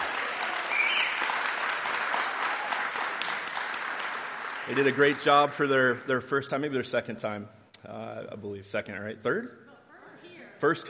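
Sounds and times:
audience applause: 0:00.0 - 0:06.0
speech: 0:04.7 - 0:09.6, 0:10.6 - 0:10.8.

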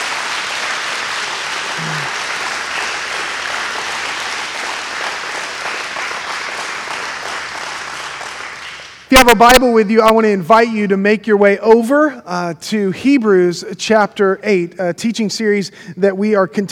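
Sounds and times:
congregation applauding at a morning church service: 0:00.0 - 0:09.4
speech: 0:09.1 - 0:16.6.

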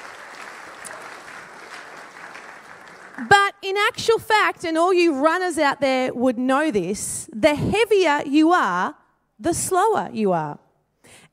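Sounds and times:
people clapping for a runner: 0:00.0 - 0:03.5
speech: 0:03.2 - 0:10.6.

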